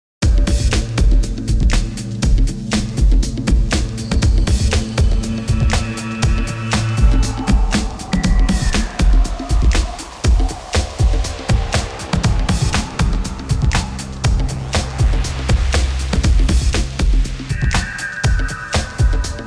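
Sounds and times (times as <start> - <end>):
percussion: 0.2 - 19.4.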